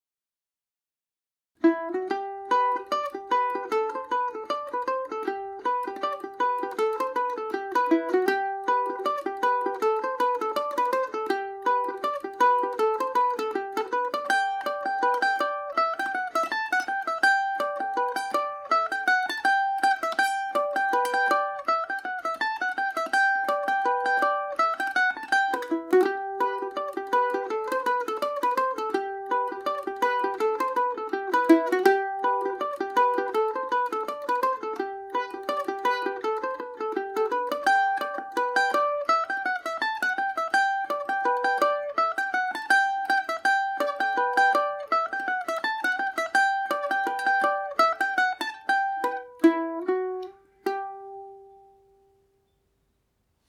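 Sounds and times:
mandolin tune in G major: 1.6s - 52.9s.

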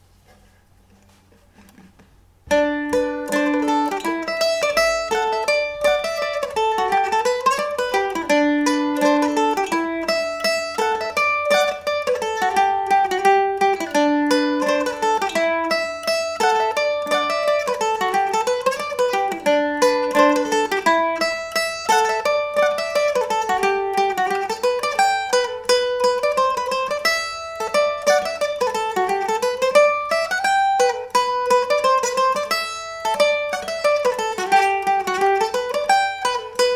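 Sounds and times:
mandolin: 0.0s - 36.7s.

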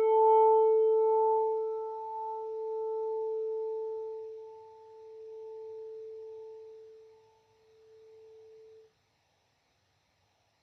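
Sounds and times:
Irish mandolin mandobird playing G major: 0.0s - 6.6s.

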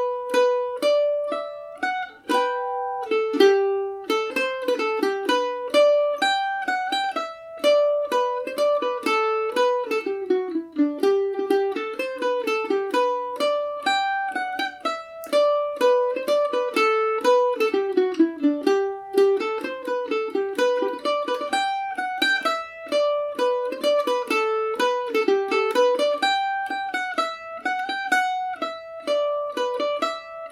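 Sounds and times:
mandolin playing in G major: 0.0s - 30.4s.

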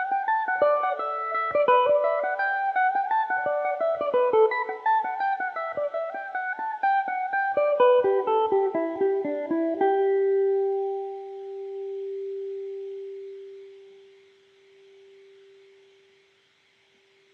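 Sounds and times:
Irish mandolin in G major: 0.0s - 13.0s.

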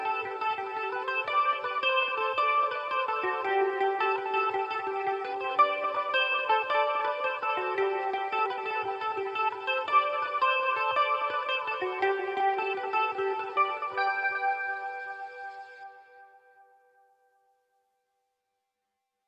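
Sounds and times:
Revelation Jaguar electric mandolin through modern British metal amp setting playing jigs: 0.0s - 15.7s.

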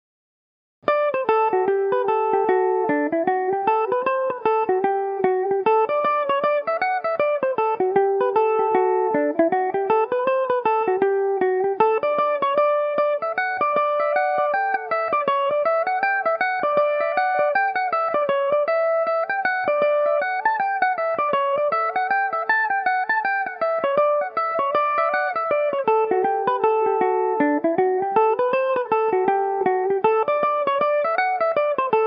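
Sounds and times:
Irish mandolin in D mixolydian: 0.9s - 32.0s.

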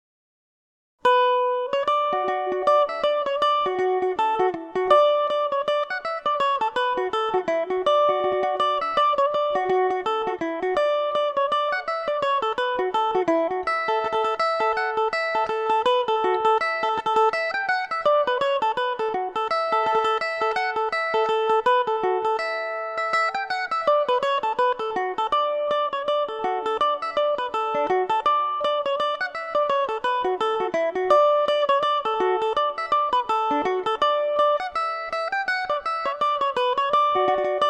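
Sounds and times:
mandolin playing a reel in D major: 1.0s - 37.6s.

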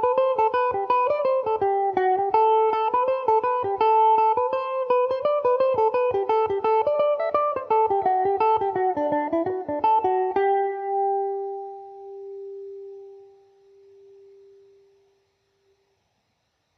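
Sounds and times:
electric mandolin in G major: 0.0s - 15.0s.

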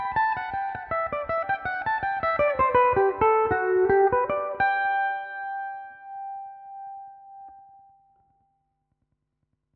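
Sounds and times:
Irish mandolin in G major: 0.0s - 6.6s.

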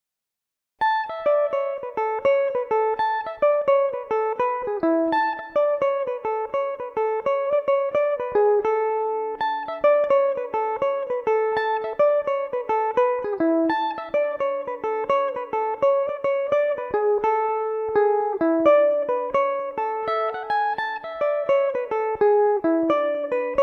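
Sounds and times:
Irish mandolin in A major: 0.8s - 23.6s.

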